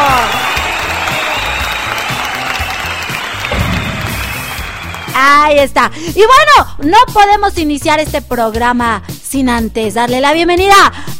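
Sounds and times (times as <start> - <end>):
live audience cheering and applauding: 0.0 - 5.7
speech: 5.6 - 11.1.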